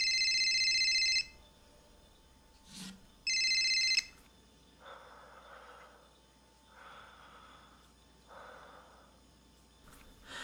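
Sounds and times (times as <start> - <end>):
mobile phone ringtone ringing: 0.0 - 1.4, 3.2 - 4.2.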